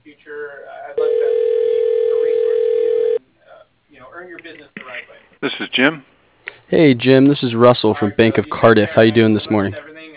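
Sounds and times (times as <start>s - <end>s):
telephone line tone while a call is transferred: 1.0s - 3.2s
speech: 5.8s - 6.1s, 6.7s - 9.9s.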